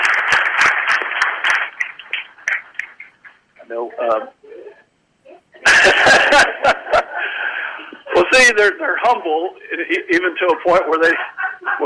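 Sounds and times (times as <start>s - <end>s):
crowd applauding: 0.0s - 3.4s
speech: 3.9s - 4.4s, 8.4s - 11.8s
laughter: 5.6s - 8.3s, 11.0s - 11.8s.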